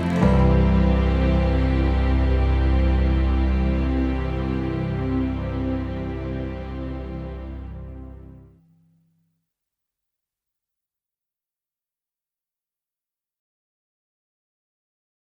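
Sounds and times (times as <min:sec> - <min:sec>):
instrumental reprise: 0:00.0 - 0:08.6.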